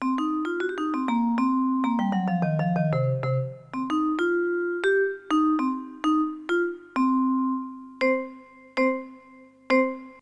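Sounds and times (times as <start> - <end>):
vibraphone: 0.0 - 10.1.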